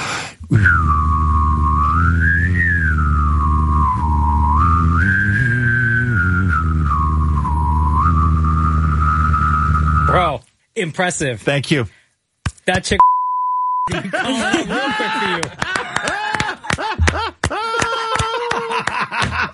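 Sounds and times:
person humming and whistling simultaneously: 0:00.4 - 0:10.2
speech: 0:00.5 - 0:00.9, 0:10.8 - 0:12.0, 0:12.7 - 0:13.0, 0:13.9 - 0:16.2
laughter: 0:13.9 - 0:19.5.

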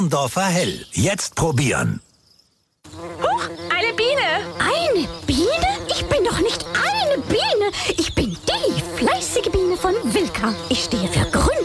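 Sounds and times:
speech: 0:00.0 - 0:02.1, 0:09.7 - 0:11.3
bee buzzing: 0:02.8 - 0:11.6.

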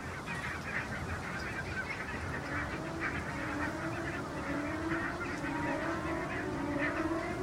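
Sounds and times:
flock of greylag geese honking as they take off: 0:00.0 - 0:07.4
steady rushing noise: 0:02.1 - 0:07.4.

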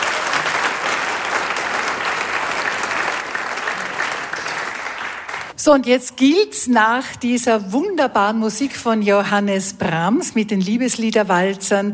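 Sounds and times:
audience applause: 0:00.0 - 0:05.5
speech: 0:05.6 - 0:11.9.

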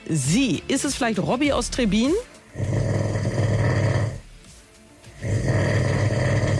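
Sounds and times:
speech: 0:00.1 - 0:02.9
man snoring in his sleep: 0:02.5 - 0:04.3, 0:05.1 - 0:06.5.

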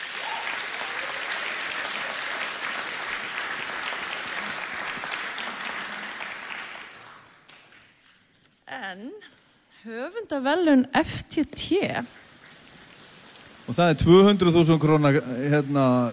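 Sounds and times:
audience clapping at an award presentation: 0:00.0 - 0:08.6, 0:12.0 - 0:16.1
speech: 0:08.8 - 0:12.2, 0:13.7 - 0:16.1.

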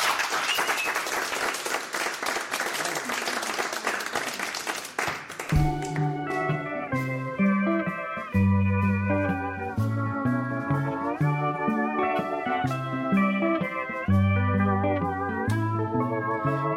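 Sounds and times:
crowd applauding for a live band: 0:00.0 - 0:06.6
band playing with low bass notes and bright chords: 0:05.4 - 0:16.7.

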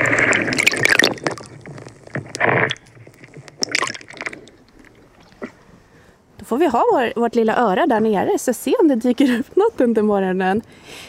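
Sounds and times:
small waves lapping heard via hydrophone: 0:00.0 - 0:06.1
speech: 0:06.5 - 0:11.0.

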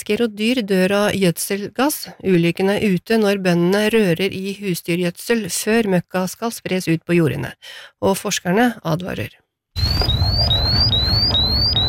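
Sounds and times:
speech: 0:00.0 - 0:10.2
gas detector alarm in a livestock barn where manure is being stirred: 0:09.8 - 0:11.8.

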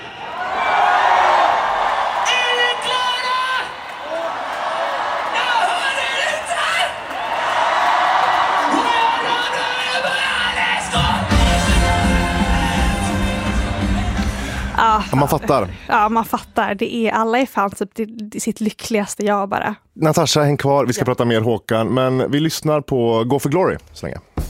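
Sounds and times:
concert crowd cheering: 0:00.0 - 0:15.7
speech: 0:15.2 - 0:24.3.

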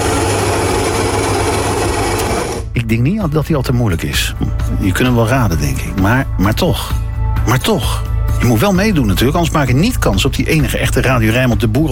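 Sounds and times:
coffee machine noise: 0:00.0 - 0:02.7
speech: 0:02.9 - 0:11.8.

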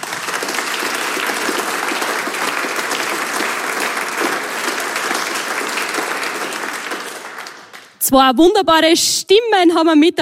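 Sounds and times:
audience applause: 0:00.0 - 0:08.0
speech: 0:08.1 - 0:10.2.

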